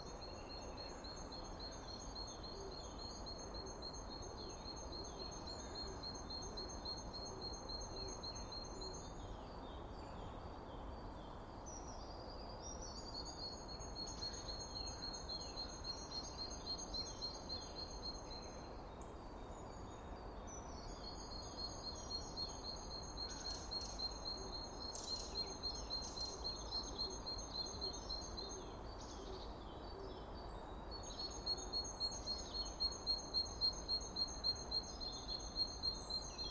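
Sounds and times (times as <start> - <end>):
bird song: 0.0 - 36.4
low background hiss: 0.0 - 36.4.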